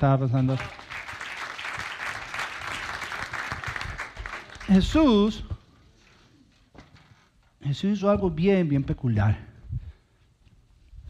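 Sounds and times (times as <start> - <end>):
speech: 0.0 - 0.9, 4.7 - 5.5, 7.6 - 9.5
audience applause: 0.4 - 5.0.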